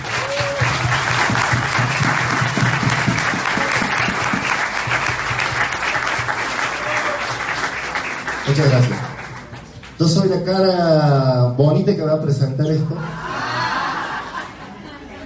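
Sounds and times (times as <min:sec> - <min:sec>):
audience applause: 0:00.0 - 0:10.0
speech: 0:08.5 - 0:09.0, 0:10.0 - 0:13.2
laughter: 0:13.0 - 0:15.2.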